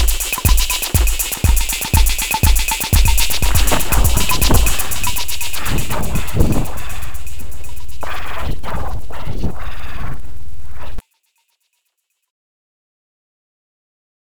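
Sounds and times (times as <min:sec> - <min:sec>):
white noise: 0:00.0 - 0:11.0.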